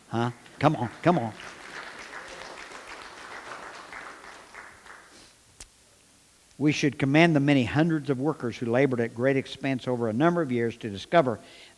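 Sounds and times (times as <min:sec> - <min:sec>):
audience clapping: 0:00.0 - 0:05.3
speech: 0:00.1 - 0:01.6, 0:06.6 - 0:11.7.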